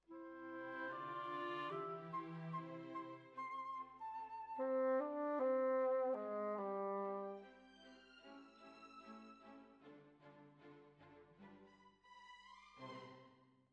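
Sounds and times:
bassoon: 0.0 - 3.2, 4.6 - 7.6.

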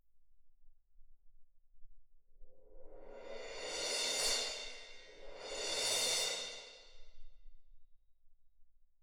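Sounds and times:
percussion: 2.8 - 7.3.

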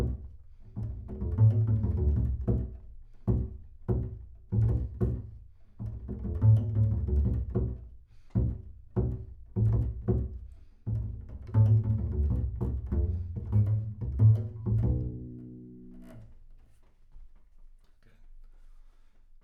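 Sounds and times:
bass sound: 0.8 - 2.7, 3.9 - 7.8, 8.4 - 16.2.

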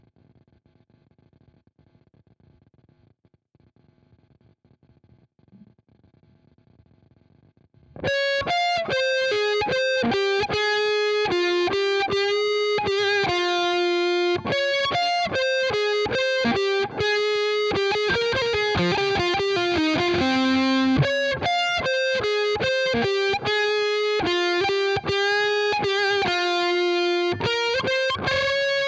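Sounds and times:
guitar: 8.0 - 28.8.

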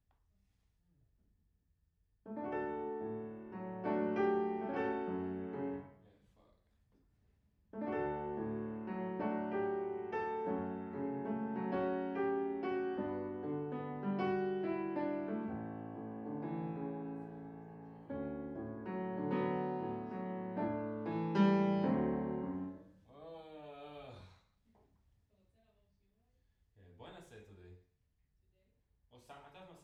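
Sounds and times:
piano in a room: 2.3 - 6.1, 7.7 - 22.9.

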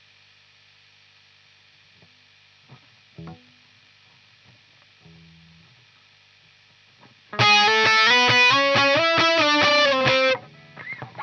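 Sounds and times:
guitar: 2.7 - 3.7, 7.0 - 11.2.

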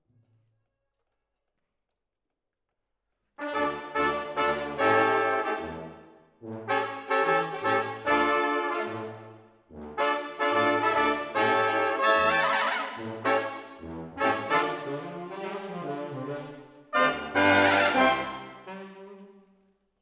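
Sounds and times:
horns playing: 3.4 - 19.2.

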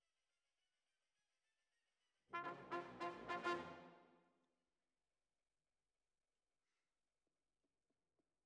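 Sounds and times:
trumpet: 2.3 - 4.2.

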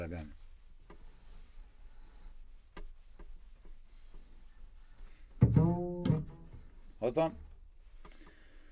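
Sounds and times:
contrabass: 5.4 - 7.3.

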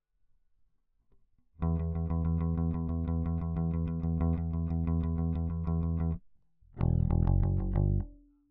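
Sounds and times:
bass: 1.6 - 8.3.

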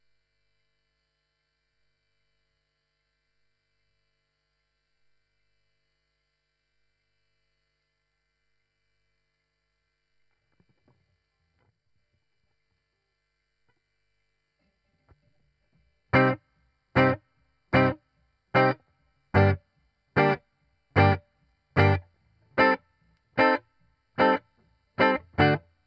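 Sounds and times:
guitar: 15.0 - 25.8.

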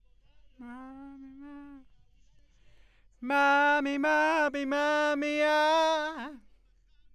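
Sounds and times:
backing vocals: 0.6 - 1.8, 3.2 - 6.4.

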